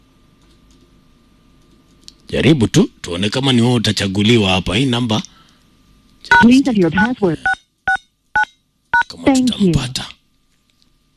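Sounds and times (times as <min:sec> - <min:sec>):
speech: 0:02.3 - 0:05.3, 0:06.2 - 0:07.5, 0:09.4 - 0:10.1
telephone keypad tones dialing a USSD code: 0:06.3 - 0:08.5.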